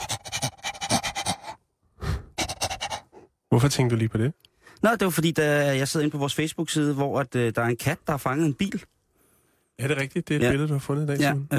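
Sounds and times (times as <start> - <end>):
happy dog panting: 0.0 - 1.6, 2.4 - 3.3
speech: 3.5 - 9.0, 9.8 - 11.5.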